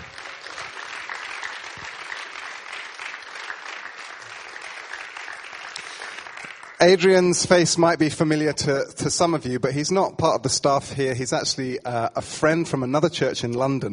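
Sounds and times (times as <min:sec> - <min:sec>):
audience applause welcoming a speaker at a church gathering: 0:00.0 - 0:07.4
speech: 0:06.8 - 0:13.9.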